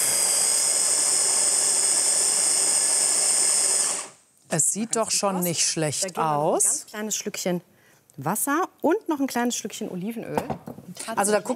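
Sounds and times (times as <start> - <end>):
blender mixing sauce ingredients: 0.0 - 4.2
speech: 4.5 - 11.5.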